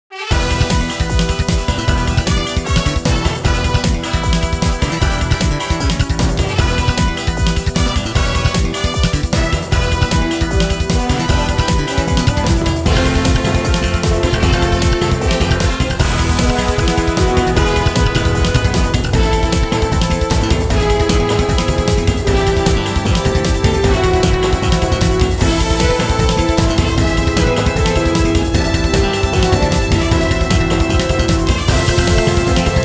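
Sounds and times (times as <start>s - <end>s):
stage background music: 0.1s - 32.8s.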